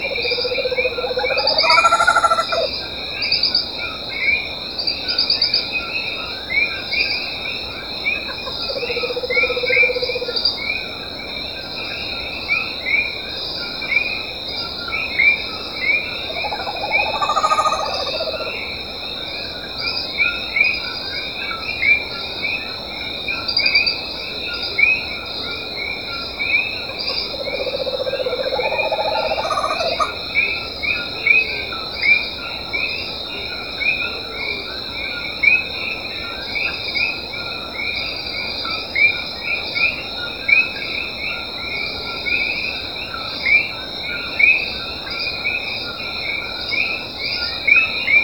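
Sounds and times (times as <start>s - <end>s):
coqui: 0.0s - 48.2s
Megascops nudipes: 1.5s - 2.7s.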